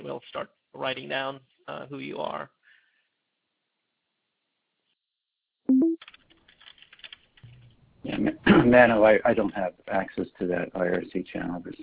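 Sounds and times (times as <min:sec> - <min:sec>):
speech: 0:00.1 - 0:02.6, 0:08.0 - 0:11.8
brief loud tone: 0:05.7 - 0:06.0.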